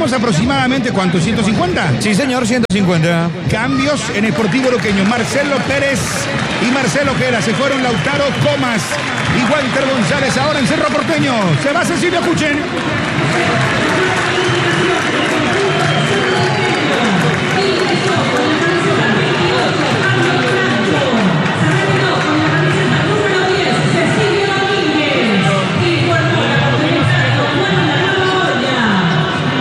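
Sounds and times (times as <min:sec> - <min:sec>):
speech: 0:00.0 - 0:15.4
stadium crowd applauding: 0:03.5 - 0:29.5
crowd whistles: 0:05.8 - 0:11.0, 0:13.0 - 0:22.2.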